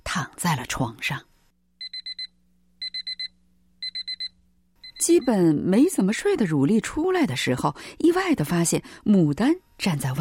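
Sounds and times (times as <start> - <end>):
speech: 0.2 - 1.3, 5.0 - 10.1
alarm clock ringing: 1.8 - 5.5.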